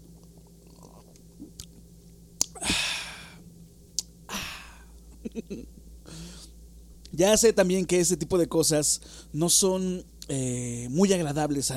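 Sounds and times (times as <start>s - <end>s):
person sipping a glass of orange water: 0.1s - 1.8s
speech: 5.3s - 6.5s, 7.1s - 11.7s.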